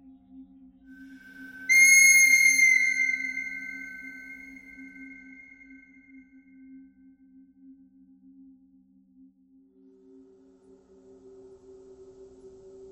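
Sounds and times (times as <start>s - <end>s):
bird cries: 1.7s - 5.4s.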